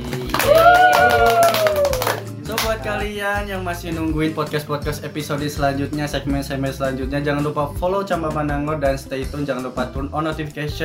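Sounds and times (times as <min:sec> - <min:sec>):
small group clapping: 0:00.0 - 0:03.0
high voice cheering whoop: 0:00.4 - 0:02.2
speech: 0:03.0 - 0:10.8.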